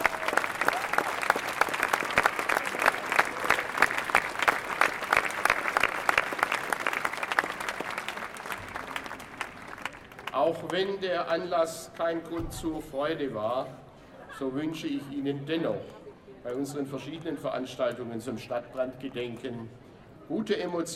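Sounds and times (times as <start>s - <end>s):
audience applause: 0.0s - 10.8s
speech: 10.5s - 13.8s, 14.4s - 20.9s.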